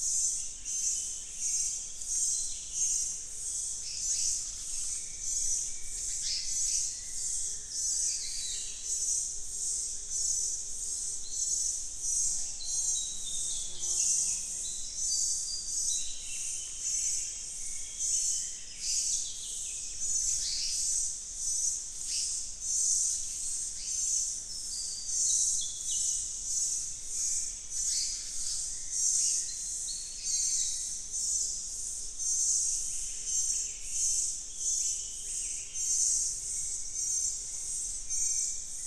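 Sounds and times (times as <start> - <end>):
midday bird chorus in Amani Forest Tanzania: 0.0 - 38.8.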